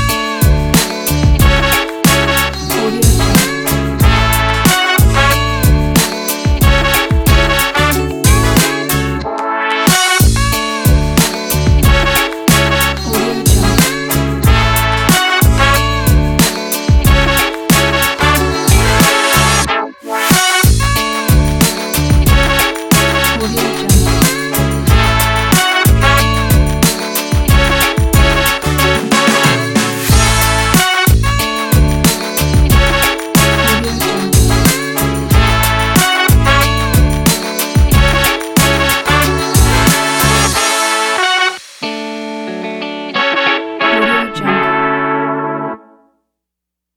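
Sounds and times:
positive hip hop music: 0.0 - 45.4.

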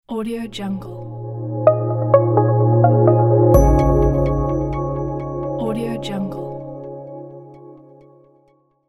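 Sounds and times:
melodic logo jingle: 1.2 - 7.6.

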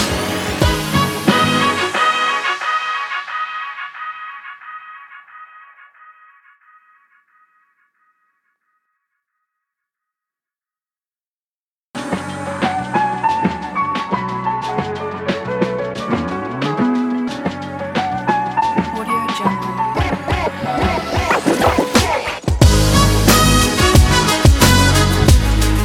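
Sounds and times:
hip hop action drum kit: 0.0 - 4.7, 12.0 - 25.8.

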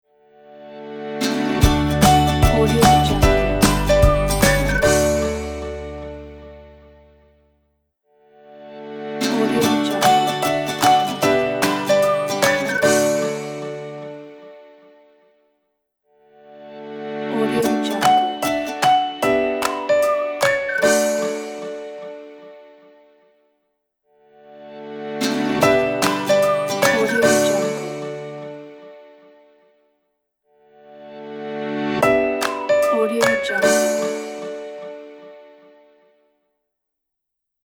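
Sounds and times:
ukulele logo jingle: 1.2 - 6.9, 9.2 - 14.4, 17.4 - 22.4, 25.2 - 28.8, 32.0 - 35.2
whistle logo jingle: 3.6 - 5.3, 10.4 - 13.4, 18.4 - 21.4.

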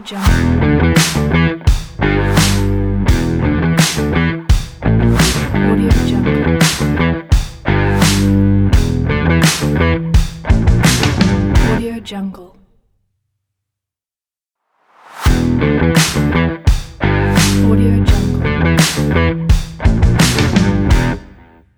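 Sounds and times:
rock music logo: 0.3 - 11.8, 15.3 - 17.6, 18.6 - 21.3.

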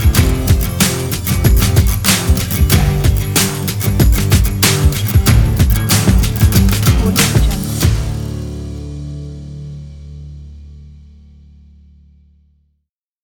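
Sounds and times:
western driving rock music: 0.0 - 9.8.

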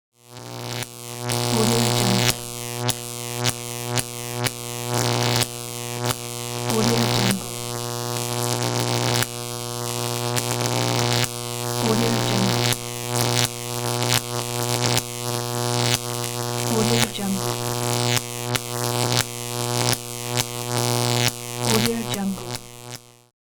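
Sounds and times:
high voltage electricity: 0.2 - 23.3.

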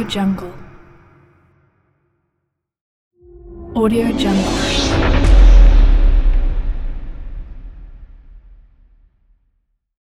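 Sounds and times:
powerful hits: 3.2 - 9.1.

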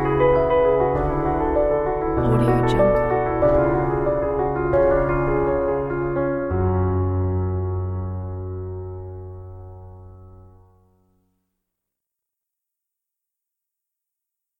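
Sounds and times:
inspiring classic uplifting piano: 0.0 - 10.8.

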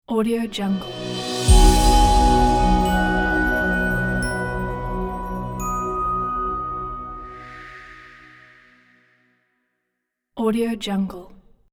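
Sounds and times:
airy logo jingle: 0.5 - 8.7.

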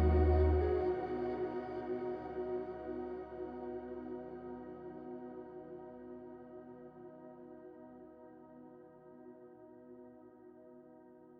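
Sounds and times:
ambient calm cinematic guitar: 0.0 - 2.4.

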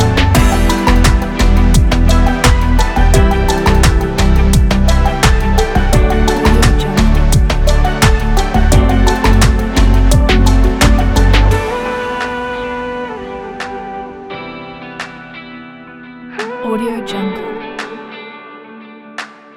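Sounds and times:
upbeat corporate music: 0.0 - 12.8.

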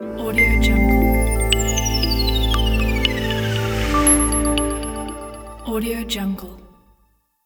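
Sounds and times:
technological logo jingle: 0.1 - 6.8.

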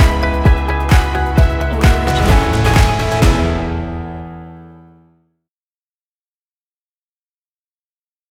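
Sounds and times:
upbeat corporate music: 0.0 - 4.9.

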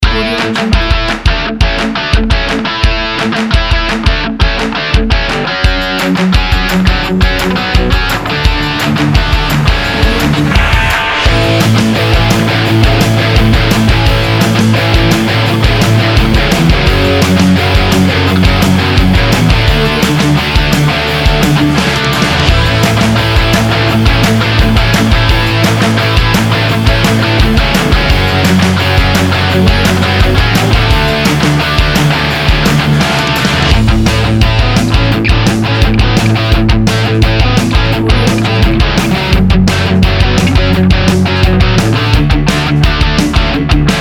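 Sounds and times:
pop punk summer party music: 0.0 - 43.9.

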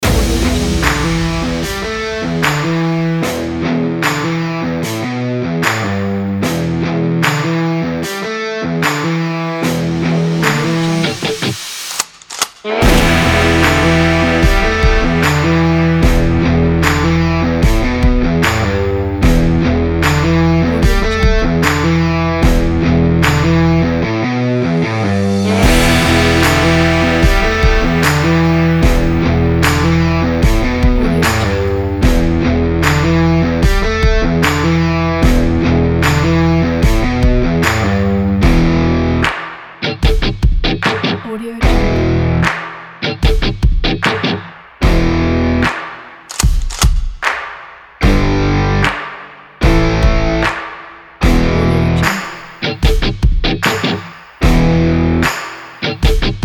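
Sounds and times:
western music: 0.0 - 56.4.

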